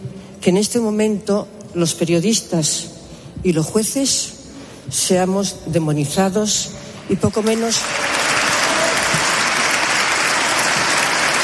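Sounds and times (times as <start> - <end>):
speech: 0.4 - 8.2
long audience applause: 7.4 - 11.4.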